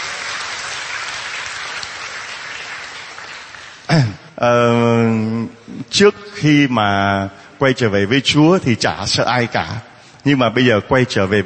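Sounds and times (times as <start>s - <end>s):
crowd clapping: 0.0s - 4.0s
speech: 3.9s - 5.2s, 6.0s - 11.4s.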